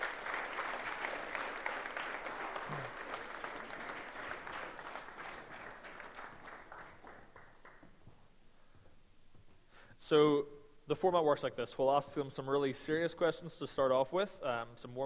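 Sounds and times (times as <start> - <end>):
audience applause welcoming guests: 0.0 - 7.9
speech: 10.1 - 15.0.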